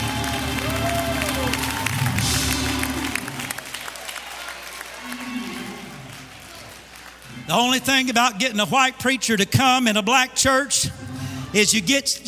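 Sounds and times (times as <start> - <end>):
audience clapping hands and cheering: 0.0 - 8.8
speech: 7.5 - 12.2.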